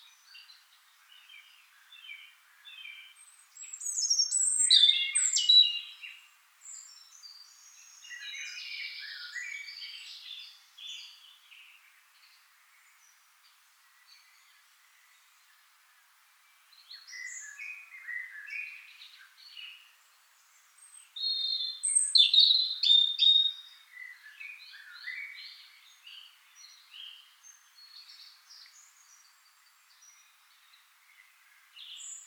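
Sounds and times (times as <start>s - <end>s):
European robin song of whistles and warbled notes: 0.0s - 32.2s.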